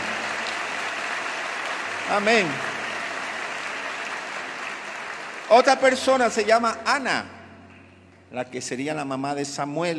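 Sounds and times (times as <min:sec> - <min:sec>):
congregation applauding during a church sermon: 0:00.0 - 0:07.2
speech: 0:02.1 - 0:02.7, 0:05.5 - 0:07.4, 0:08.3 - 0:09.9.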